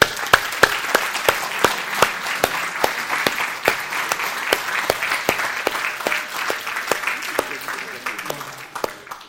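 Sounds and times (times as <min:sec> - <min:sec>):
audience applauding: 0:00.0 - 0:09.2.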